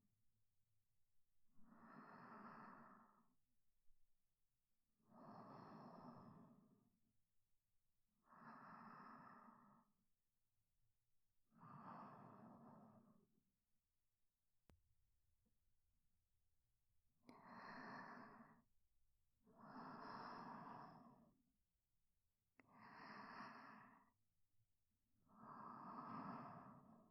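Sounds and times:
sleep breathing: 1.7 - 3.3, 5.1 - 6.8, 8.3 - 10.0, 11.6 - 13.2, 17.3 - 18.6, 19.6 - 21.3, 22.7 - 24.2, 25.3 - 27.1.

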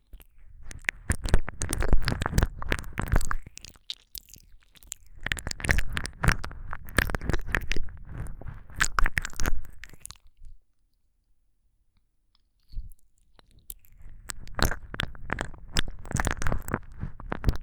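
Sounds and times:
ASMR ear licking sounds: 0.2 - 10.2, 13.7 - 17.6.

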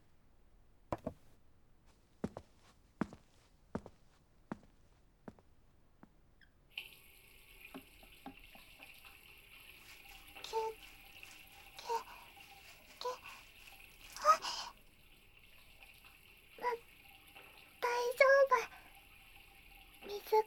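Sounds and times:
sharp taps: 0.9 - 1.3
tap water running while washing a mug: 6.7 - 20.4.

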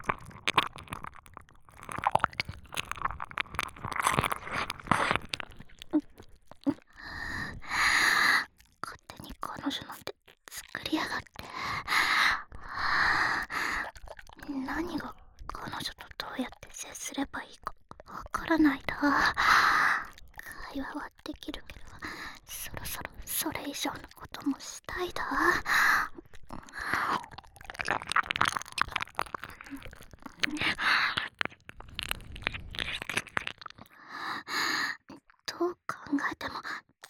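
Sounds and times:
ear licking: 0.0 - 16.8, 21.3 - 34.0
nipple licking: 0.0 - 35.3
fellatio sounds: 0.0 - 35.8.

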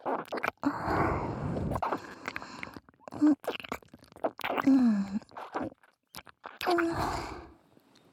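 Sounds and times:
ear licking sounds: 0.0 - 0.7, 1.5 - 7.1.

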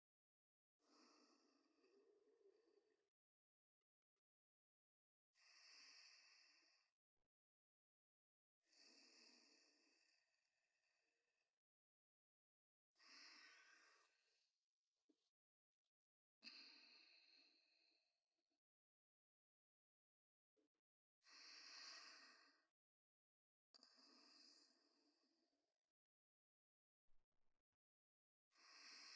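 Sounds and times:
person breathing in sleep: 0.8 - 2.0, 5.4 - 6.9, 8.7 - 10.3, 13.0 - 14.3, 16.4 - 18.0, 21.2 - 22.7, 23.9 - 25.1, 28.5 - 29.1.

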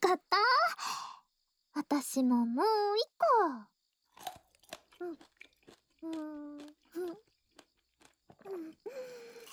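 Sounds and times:
speech: 0.1 - 0.3, 1.8 - 3.7, 5.0 - 5.3, 6.0 - 7.3, 8.4 - 9.5
crunchy chewing of food: 4.1 - 9.5.

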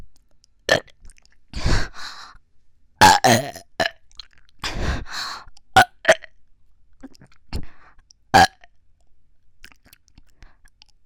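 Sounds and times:
burping: 0.7 - 1.0, 3.0 - 4.0, 8.4 - 8.6.

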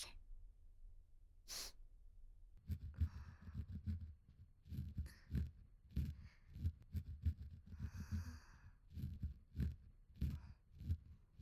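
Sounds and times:
ear cleaning ASMR: 2.7 - 11.4.

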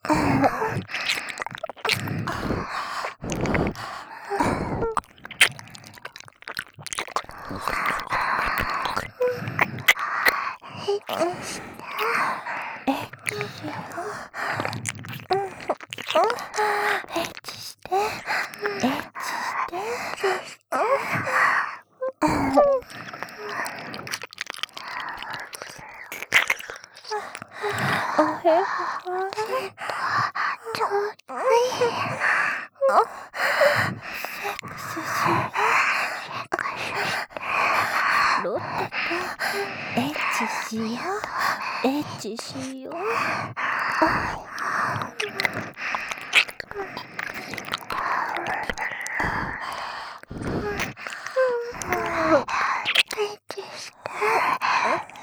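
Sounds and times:
ear licking: 0.0 - 55.2.

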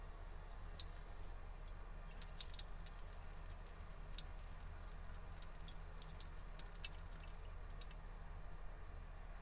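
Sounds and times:
person urinating in a home toilet: 0.1 - 9.2.

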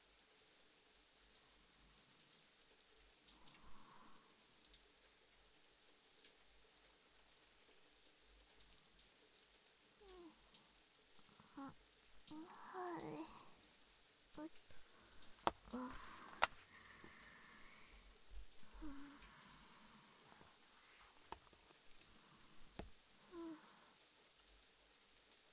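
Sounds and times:
rain: 0.0 - 25.5
writing work while dozing: 14.5 - 17.2.

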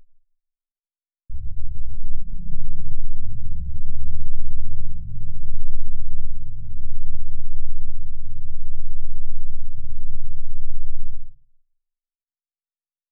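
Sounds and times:
10 Hz low-frequency tone: 1.3 - 11.4.

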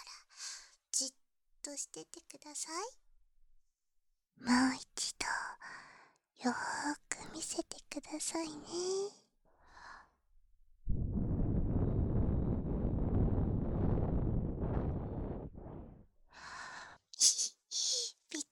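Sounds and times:
speech: 1.0 - 3.0, 4.4 - 5.8, 6.4 - 9.2
breath blown softly into an ear during an ear-cleaning roleplay: 11.0 - 16.6.

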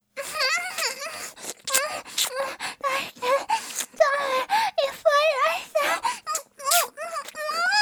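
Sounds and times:
swallowing: 0.2 - 7.7.

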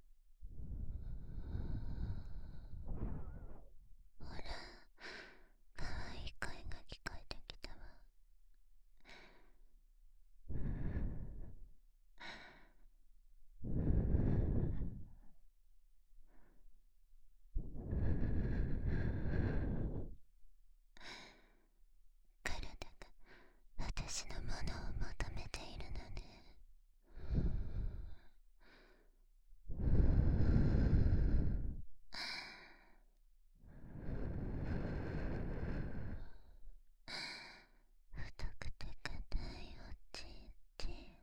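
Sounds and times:
breathing: 0.5 - 3.7, 4.4 - 5.6, 9.0 - 9.6, 10.5 - 12.9, 13.6 - 15.4, 16.2 - 16.7, 17.6 - 20.2, 21.0 - 21.7, 23.2 - 23.6, 25.8 - 38.3
whispering: 2.9 - 4.7, 5.8 - 8.1, 22.4 - 23.2, 23.8 - 26.6, 38.2 - 41.2.

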